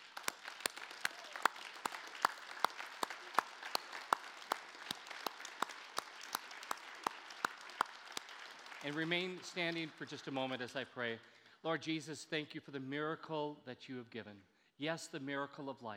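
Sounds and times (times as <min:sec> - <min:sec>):
audience applauding: 0:00.0 - 0:10.4
speech: 0:08.8 - 0:15.9.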